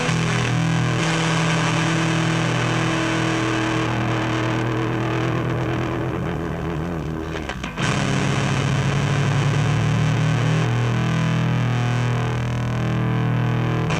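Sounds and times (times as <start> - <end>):
Axis Fuzz at max gain: 0.0 - 13.9.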